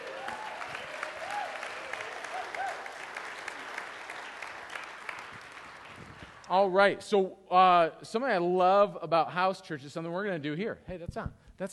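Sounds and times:
faint whoops and voices: 0.0 - 2.9
audience clapping: 0.0 - 6.6
speech: 6.5 - 11.7.

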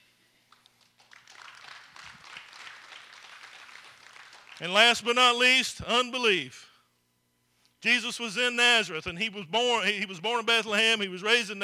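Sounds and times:
crowd clapping: 0.5 - 5.2
speech: 4.6 - 6.7, 7.8 - 11.6.

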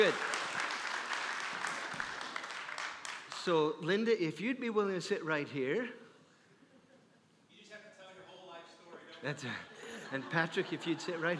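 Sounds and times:
speech: 0.0 - 0.3, 3.4 - 6.0, 9.2 - 11.3
audience clapping: 0.0 - 3.8
laughter: 9.3 - 11.3.

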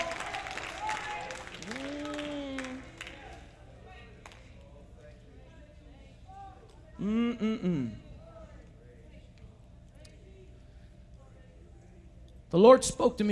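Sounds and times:
audience clapping: 0.0 - 4.6
speech: 7.0 - 8.0, 12.5 - 13.2.

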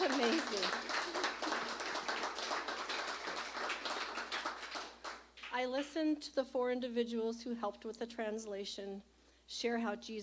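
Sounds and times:
audience clapping: 0.0 - 5.6
speech: 0.2 - 0.9, 5.6 - 10.2.

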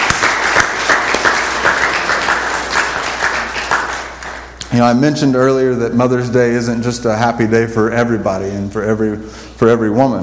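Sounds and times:
audience applause: 0.0 - 4.6
speech: 4.7 - 10.2.

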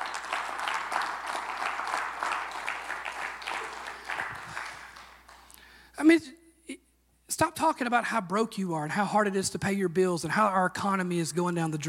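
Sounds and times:
audience applause: 0.0 - 5.6
speech: 6.0 - 6.4, 7.6 - 11.8.

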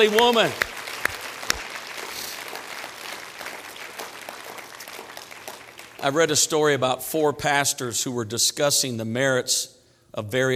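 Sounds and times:
speech: 0.0 - 0.7, 6.0 - 10.5
audience clapping hands: 0.0 - 6.1.

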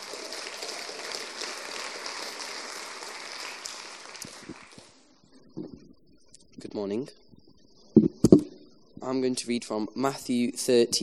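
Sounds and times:
round of applause: 0.0 - 5.1
speech: 6.8 - 7.2, 9.1 - 11.0.

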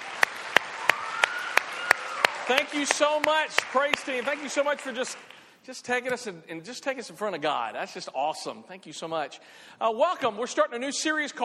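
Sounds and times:
audience clapping: 0.0 - 5.5
speech: 2.5 - 11.4.

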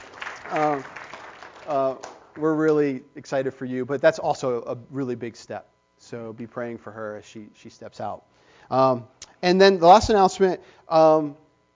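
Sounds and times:
audience applause: 0.0 - 2.6
speech: 0.5 - 1.0, 1.6 - 11.4.

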